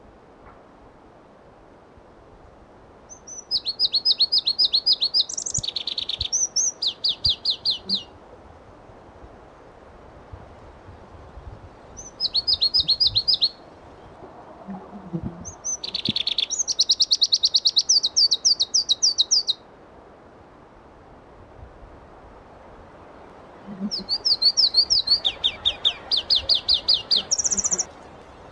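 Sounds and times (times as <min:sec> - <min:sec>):
Pallas's leaf warbler song: 0:03.1 - 0:08.2, 0:10.6 - 0:19.6, 0:23.0 - 0:28.5.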